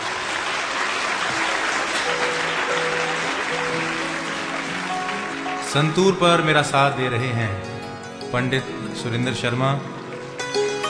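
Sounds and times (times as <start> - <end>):
audience applause welcoming a musician: 0.0 - 6.8
speech: 5.7 - 7.7, 8.3 - 10.0.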